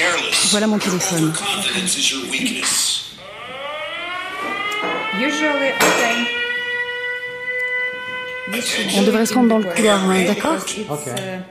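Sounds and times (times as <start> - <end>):
speech: 0.4 - 3.2, 4.4 - 6.5, 8.5 - 11.5
air raid alert siren: 2.8 - 11.1.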